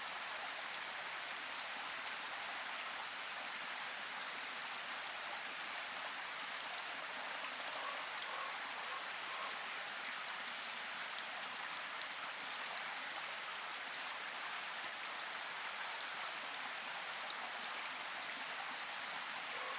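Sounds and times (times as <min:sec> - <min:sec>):
rain in forest: 0:00.0 - 0:19.7
birds: 0:19.6 - 0:19.7.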